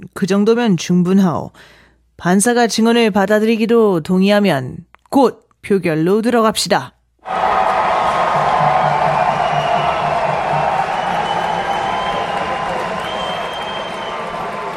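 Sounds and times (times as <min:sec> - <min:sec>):
speech: 0:00.0 - 0:07.4
crowd applauding and cheering at a courtroom vote in a trial: 0:07.3 - 0:14.7.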